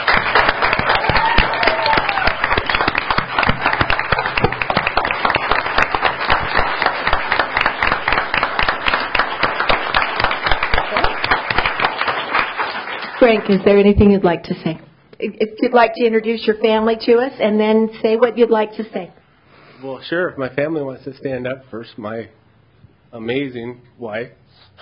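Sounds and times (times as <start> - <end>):
audience applause at a Board of Education meeting: 0.0 - 13.9
speech: 13.3 - 19.2, 19.8 - 22.4, 23.1 - 24.7.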